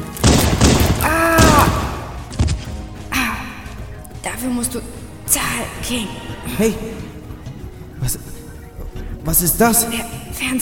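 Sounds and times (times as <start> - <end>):
gunshots in a German crime audio drama: 0.0 - 2.8
voice crying out: 1.0 - 2.0
speech: 4.4 - 7.2, 8.0 - 8.4, 9.3 - 10.6.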